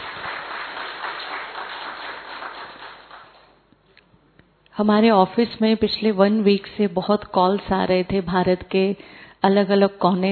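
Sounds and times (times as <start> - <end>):
audience applause: 0.0 - 3.6
speech: 4.8 - 10.3.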